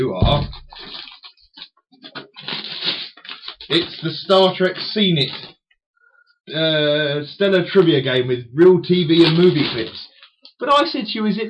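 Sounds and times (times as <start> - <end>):
speech: 0.0 - 1.0, 3.7 - 5.5, 6.5 - 11.4
wrapping paper being ripped open: 0.6 - 1.4, 2.0 - 4.5, 5.2 - 5.6, 9.2 - 10.3.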